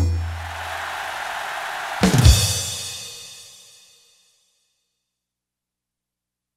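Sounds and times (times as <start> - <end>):
factory rhythm set on a synthesizer module: 0.2 - 3.2.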